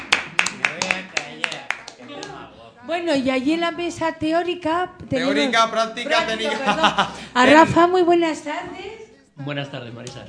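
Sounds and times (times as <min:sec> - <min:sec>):
audience applause: 0:00.0 - 0:02.4
speech: 0:02.9 - 0:10.2
laughter: 0:06.3 - 0:07.5.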